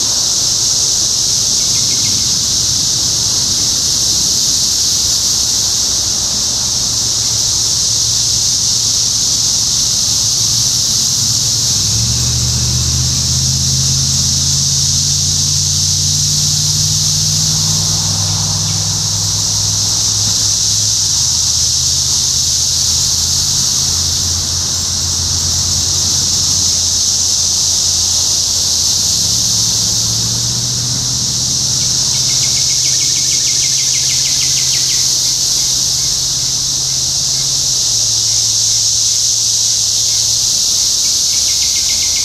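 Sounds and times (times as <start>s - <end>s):
cicada chorus buzzing: 0.0s - 42.2s
low engine-like hum: 1.3s - 33.6s.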